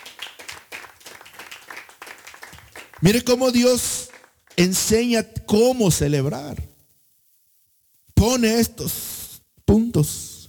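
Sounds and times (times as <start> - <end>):
church congregation clapping during a worship service: 0.0 - 5.2
speech: 3.0 - 6.7, 8.2 - 9.1, 10.0 - 10.2.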